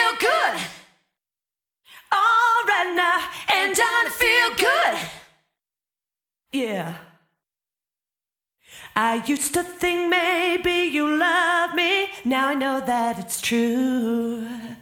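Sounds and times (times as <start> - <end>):
person singing: 0.0 - 0.8, 2.1 - 5.1, 8.9 - 14.8.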